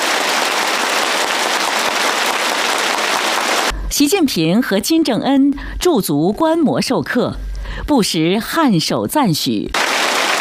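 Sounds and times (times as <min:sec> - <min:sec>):
warm applause from teachers and students: 0:00.0 - 0:03.7, 0:09.8 - 0:10.4
speech: 0:04.0 - 0:09.8.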